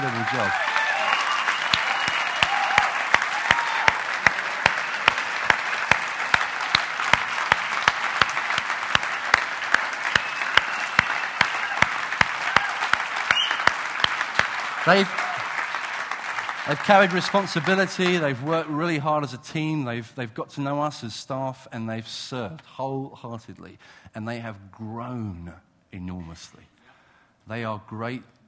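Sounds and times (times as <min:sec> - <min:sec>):
speech: 0:00.0 - 0:00.7, 0:14.9 - 0:15.2, 0:16.7 - 0:26.7, 0:27.5 - 0:28.4
audience applause: 0:00.0 - 0:18.9.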